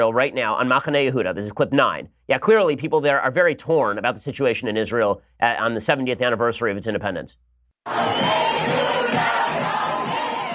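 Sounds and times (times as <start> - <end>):
speech: 0.0 - 9.4
huge crowd of thousands cheering in a street: 7.9 - 10.5.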